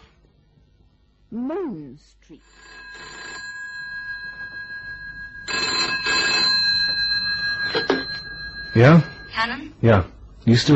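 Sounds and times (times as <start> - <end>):
speech: 1.3 - 3.2, 8.7 - 10.7
telephone bell ringing in a phone box: 2.4 - 9.8.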